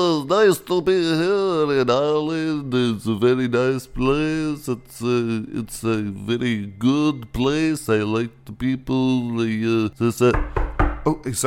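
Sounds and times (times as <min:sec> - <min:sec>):
speech: 0:00.0 - 0:11.4
knock at the door: 0:10.3 - 0:11.1.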